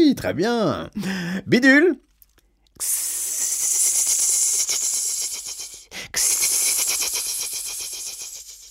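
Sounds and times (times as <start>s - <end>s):
speech: 0.1s - 2.1s, 2.8s - 3.1s
voice imitating snake hiss: 2.8s - 8.7s.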